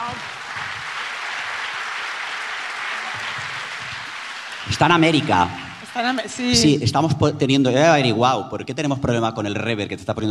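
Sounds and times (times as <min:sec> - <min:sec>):
audience applause: 0:00.0 - 0:06.6
speech: 0:04.6 - 0:10.3.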